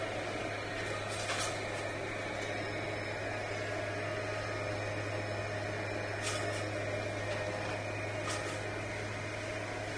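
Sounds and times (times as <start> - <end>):
leaf blower running outside: 0.0 - 9.9.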